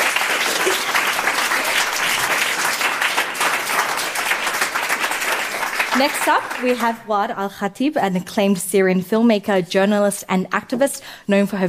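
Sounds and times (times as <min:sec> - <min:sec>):
audience applause: 0:00.0 - 0:07.0
speech: 0:06.0 - 0:11.6.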